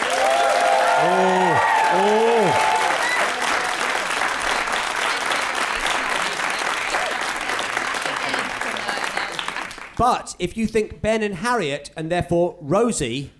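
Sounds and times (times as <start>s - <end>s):
live audience applauding: 0.0s - 10.0s
speech: 10.0s - 13.3s.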